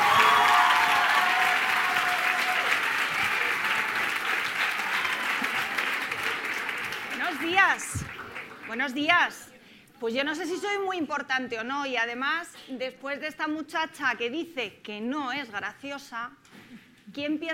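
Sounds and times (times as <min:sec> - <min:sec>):
audience applause: 0:00.0 - 0:09.0
speech: 0:08.8 - 0:16.5, 0:17.2 - 0:17.5.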